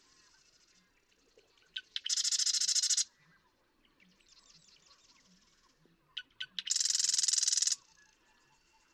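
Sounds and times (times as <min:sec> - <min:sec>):
Marsh Wren singing: 0:01.7 - 0:03.1, 0:06.2 - 0:07.9.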